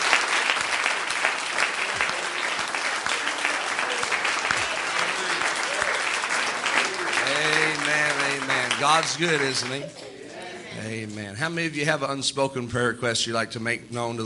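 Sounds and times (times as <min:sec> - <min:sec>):
audience hand clapping: 0:00.0 - 0:10.0
speech: 0:08.8 - 0:10.0, 0:10.8 - 0:14.2.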